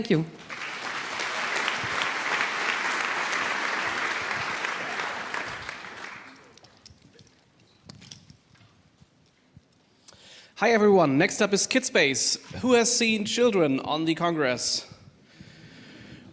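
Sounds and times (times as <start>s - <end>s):
speech: 0.0s - 0.5s, 10.6s - 14.9s
audience applause: 0.4s - 6.6s.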